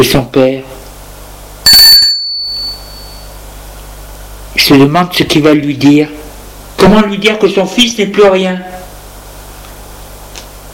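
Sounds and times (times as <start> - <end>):
speech: 0.0 - 0.8, 4.6 - 6.2, 6.8 - 8.7
doorbell ringing at apartment door: 1.7 - 3.3.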